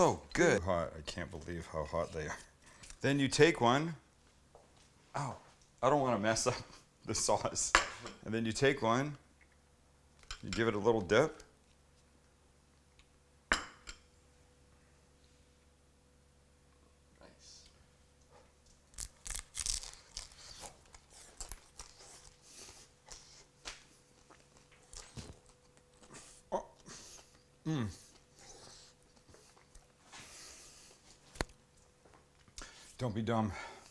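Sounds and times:
speech: 0.0s - 4.0s, 5.2s - 9.2s, 10.4s - 11.4s, 33.1s - 33.7s
crunching bite of fried egg roll: 19.0s - 22.5s.

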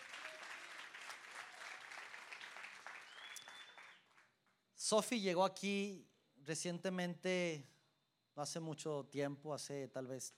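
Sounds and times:
audience applause: 0.0s - 4.2s
speech: 4.8s - 7.8s, 8.4s - 10.3s.

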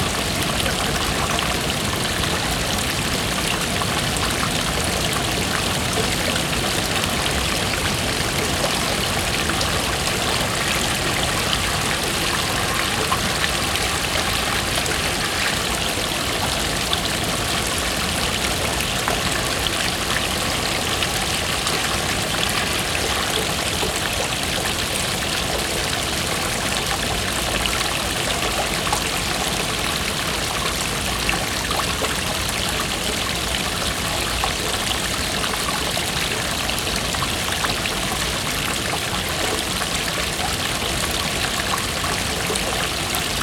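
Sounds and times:
river water flowing along the bank in Odense, Denmark: 0.0s - 43.4s.

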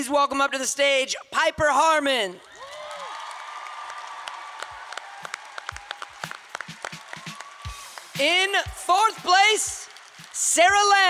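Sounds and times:
speech: 0.0s - 2.6s, 8.2s - 9.8s, 10.4s - 11.0s
audience applause for performers on stage during an awards placing ceremony: 2.4s - 11.0s.

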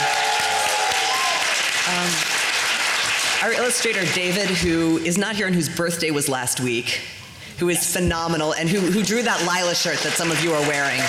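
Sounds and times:
audience applause: 0.0s - 4.4s, 9.3s - 11.0s
speech: 3.4s - 11.0s.

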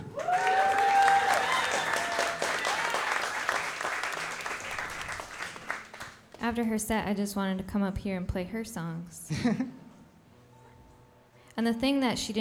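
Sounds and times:
audience applause: 0.0s - 6.3s
speech: 6.5s - 9.8s, 11.6s - 12.3s.

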